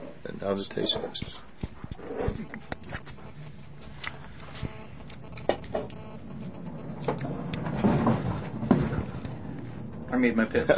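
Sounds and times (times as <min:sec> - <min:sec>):
speech: 0:00.5 - 0:01.5, 0:10.2 - 0:10.7
conveyor belts running upstairs: 0:05.8 - 0:10.7
clattering knocks and thuds of conveyor belts: 0:07.0 - 0:10.1.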